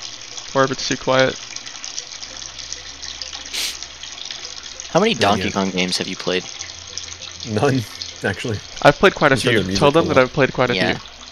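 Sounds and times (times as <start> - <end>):
speech: 0.5 - 1.5, 5.0 - 6.6, 7.4 - 11.1
peeing stream splashing: 1.5 - 5.6.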